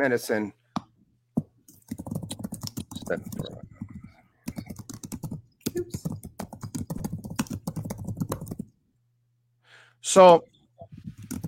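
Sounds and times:
speech: 0:00.0 - 0:00.6, 0:03.1 - 0:03.6, 0:10.1 - 0:10.5
typing on a computer keyboard: 0:01.7 - 0:08.8, 0:11.1 - 0:11.4.

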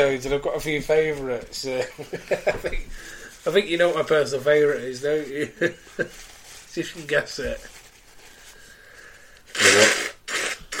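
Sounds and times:
speech: 0:00.0 - 0:07.7
person blowing nose: 0:08.3 - 0:10.7.

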